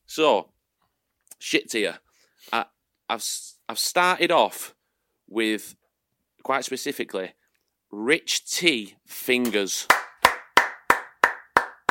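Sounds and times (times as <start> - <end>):
speech: 0.2 - 0.5, 1.4 - 5.8, 6.4 - 10.0
hand clapping: 9.4 - 11.8.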